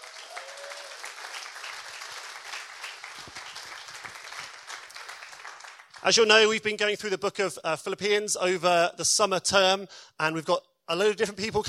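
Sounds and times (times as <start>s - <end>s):
audience applause welcoming a speaker: 0.0s - 6.0s
speech: 6.0s - 11.6s.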